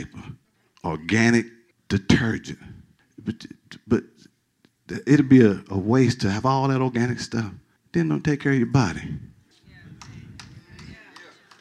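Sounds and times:
speech: 0:00.0 - 0:04.3, 0:04.9 - 0:09.3
audience clapping: 0:10.0 - 0:11.6.

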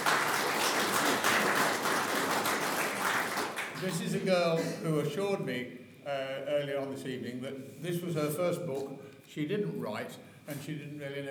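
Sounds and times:
crowd applause: 0:00.0 - 0:04.0
speech: 0:03.8 - 0:11.2.

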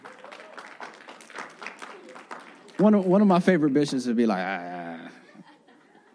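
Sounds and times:
audience clapping: 0:00.0 - 0:04.4
speech: 0:02.8 - 0:04.9
laughter: 0:04.8 - 0:06.1.

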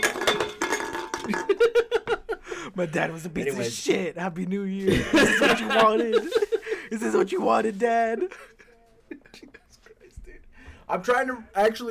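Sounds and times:
beer cans being knocked over: 0:00.0 - 0:02.2
laughter: 0:01.3 - 0:02.7, 0:04.8 - 0:10.6
speech: 0:02.8 - 0:08.5, 0:10.9 - 0:11.8.

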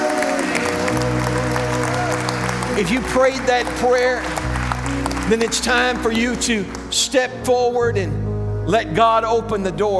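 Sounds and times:
large crowd clapping hands in praise: 0:00.0 - 0:07.2
speech: 0:02.8 - 0:04.4, 0:05.3 - 0:09.9.

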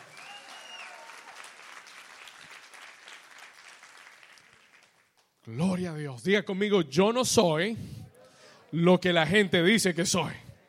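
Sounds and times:
audience applauding: 0:00.0 - 0:05.4
speech: 0:05.5 - 0:08.0, 0:08.7 - 0:10.5.

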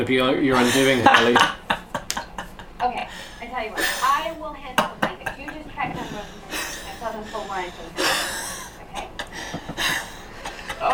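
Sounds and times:
speech: 0:00.0 - 0:01.6
laughter: 0:00.5 - 0:10.9
man breathing wheezily, laboured: 0:03.1 - 0:04.4, 0:06.0 - 0:10.6.

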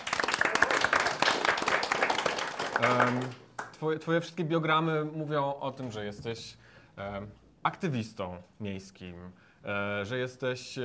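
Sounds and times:
audience applause: 0:00.0 - 0:03.7
speech: 0:02.8 - 0:10.8.

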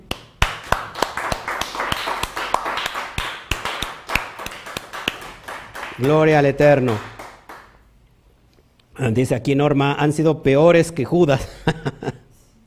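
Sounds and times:
audience applause: 0:00.4 - 0:07.8
speech: 0:06.0 - 0:07.1, 0:09.0 - 0:12.2
laughter: 0:11.4 - 0:12.3.

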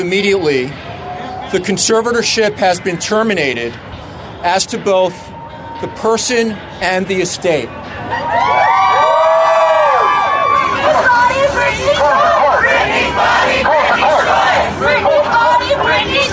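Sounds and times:
speech: 0:00.0 - 0:00.8, 0:01.5 - 0:08.6
huge crowd cheering outside courthouse: 0:08.1 - 0:16.3.

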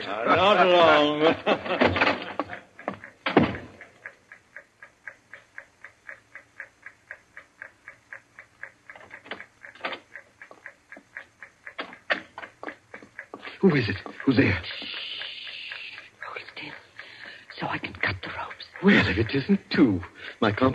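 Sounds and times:
speech: 0:00.0 - 0:02.0, 0:13.7 - 0:15.0, 0:18.8 - 0:20.7
laughter: 0:00.0 - 0:03.0, 0:18.8 - 0:19.7
steady ticking from the time fuse of a bomb: 0:00.0 - 0:20.7
loud knocks: 0:03.2 - 0:03.7.

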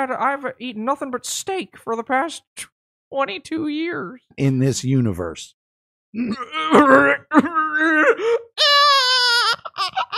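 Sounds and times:
speech: 0:00.0 - 0:08.7
man wailing and sobbing: 0:06.2 - 0:10.1.

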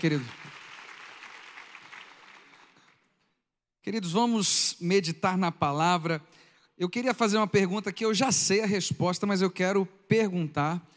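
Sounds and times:
speech: 0:00.0 - 0:00.4, 0:03.8 - 0:10.9
audience applause: 0:00.0 - 0:03.1.

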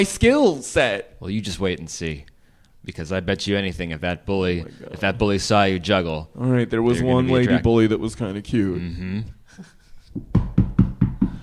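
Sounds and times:
speech: 0:00.0 - 0:10.4
knocking on a door: 0:10.2 - 0:11.4.

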